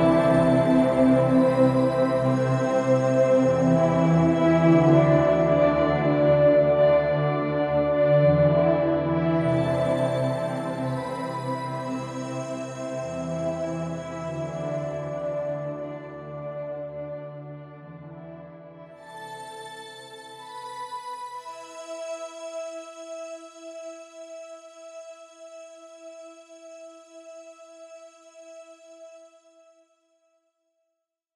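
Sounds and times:
pensive string music: 0.0 - 22.5.

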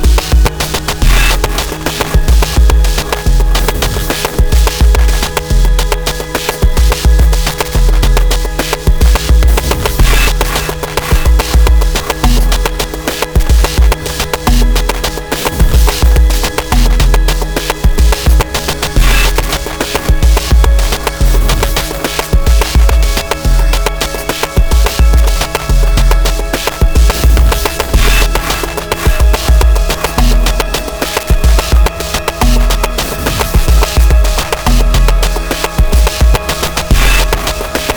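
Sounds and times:
melancholic rhythmic noise: 0.0 - 37.9.

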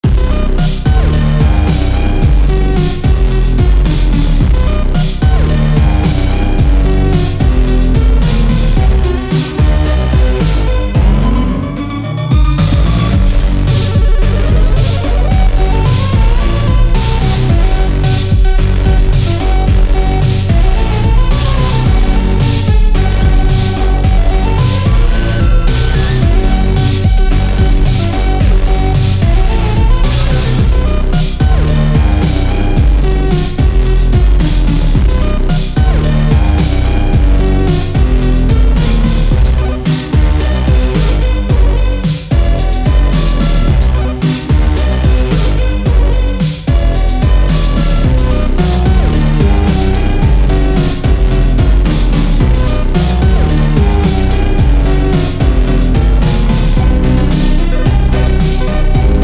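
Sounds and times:
glitch noise: 0.0 - 59.2.

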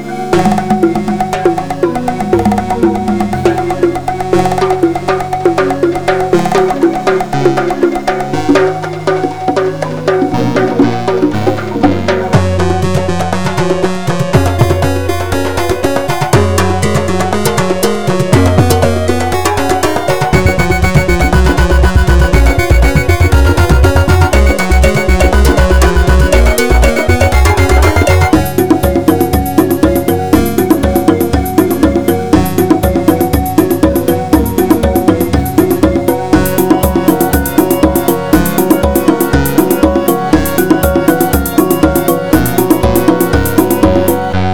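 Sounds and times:
drum: 0.3 - 44.3.

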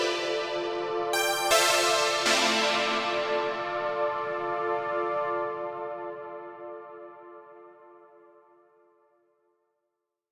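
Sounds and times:
synthwave music: 0.0 - 7.5.

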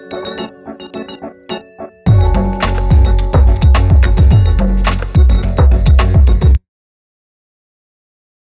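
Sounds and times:
drum break fragment: 2.1 - 6.6.

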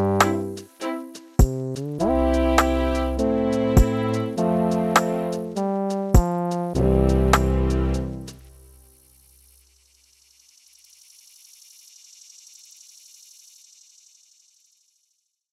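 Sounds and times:
video game style beat: 0.0 - 8.5.

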